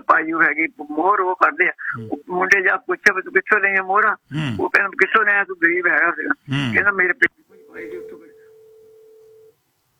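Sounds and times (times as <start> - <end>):
speech: 0.2 - 8.1
phone line tone after a call drops: 7.6 - 9.6.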